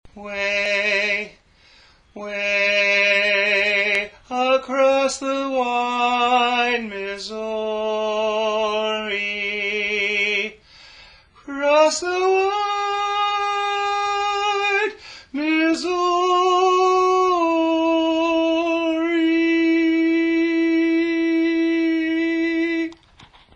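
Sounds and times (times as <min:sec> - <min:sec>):
tenor singing: 0:00.1 - 0:01.5, 0:02.1 - 0:10.6, 0:11.4 - 0:23.0.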